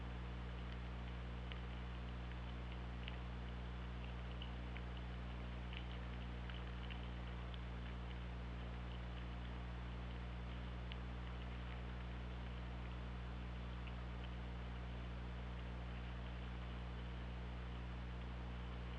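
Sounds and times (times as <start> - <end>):
steady low hydrophone hum: 0.0 - 18.9
killer whale echolocation clicks: 0.4 - 18.9.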